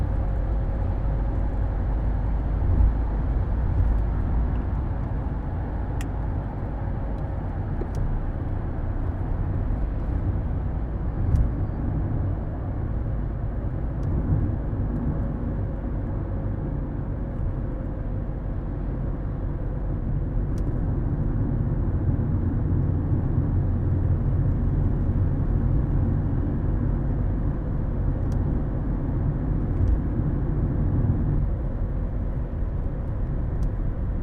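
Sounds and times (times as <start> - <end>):
vehicle cruising through Salzburg at night: 0.0 - 34.2.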